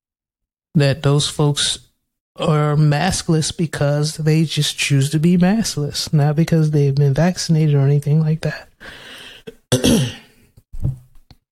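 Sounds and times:
speech: 0.8s - 1.8s, 2.4s - 10.2s
man with allergies or a cold clearing throat: 9.5s - 10.4s.

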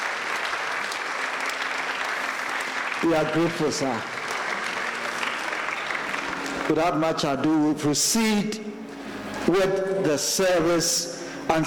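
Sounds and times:
crowd welcoming applause: 0.0s - 7.2s
speech: 3.0s - 4.2s, 6.7s - 8.8s, 9.5s - 11.6s.

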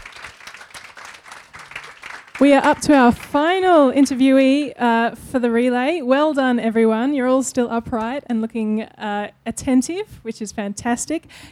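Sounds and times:
audience applause: 0.0s - 3.5s
speech: 2.4s - 11.5s.

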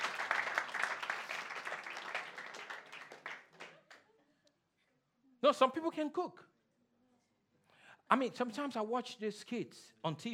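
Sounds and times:
audience clapping: 0.0s - 4.0s
speech: 5.4s - 6.5s, 8.1s - 10.3s.

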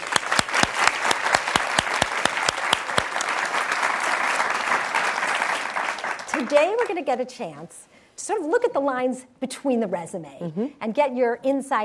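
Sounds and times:
audience applause welcoming the president and CEO of HP Enterprise: 0.0s - 7.1s
speech: 6.4s - 11.8s.

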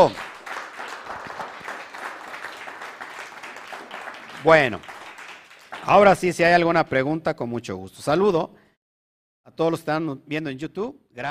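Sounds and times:
crowd applauding: 0.0s - 6.6s
speech: 4.4s - 5.0s, 5.8s - 8.6s, 9.5s - 11.2s.

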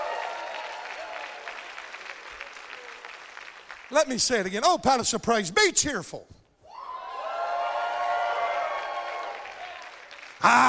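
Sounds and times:
audience cheering and applauding: 0.0s - 4.0s, 6.7s - 10.6s
speech: 3.9s - 6.4s, 10.4s - 10.6s.

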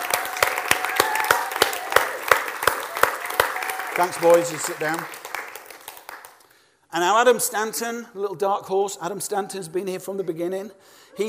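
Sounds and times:
audience applause: 0.0s - 6.4s
speech: 4.0s - 5.2s, 6.9s - 11.2s.

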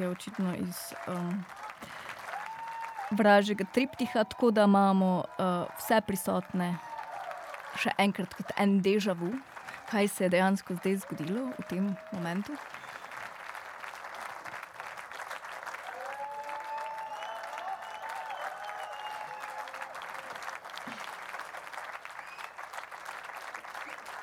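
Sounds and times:
speech: 0.0s - 2.0s, 3.1s - 6.9s, 7.8s - 12.8s
audience applause in recorded performance: 0.0s - 24.2s
whistles or cheers: 1.6s - 3.2s, 6.8s - 7.8s, 11.7s - 13.3s, 15.8s - 21.0s, 22.1s - 22.8s.

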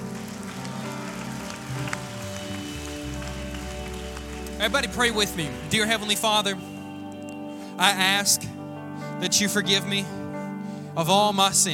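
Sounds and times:
audience clapping hands in praise: 0.0s - 6.3s
speech: 4.6s - 6.7s, 7.8s - 8.6s, 9.2s - 10.2s, 11.0s - 11.7s.

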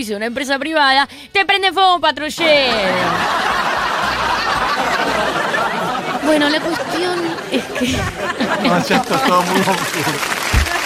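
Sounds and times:
speech: 0.0s - 3.7s, 6.2s - 10.4s
laughter: 2.4s - 10.8s
crowd applause: 2.7s - 10.8s.

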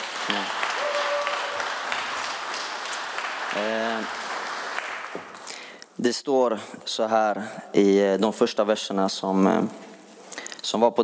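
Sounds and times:
audience applause: 0.0s - 5.5s
speech: 6.0s - 9.9s, 10.7s - 11.0s.

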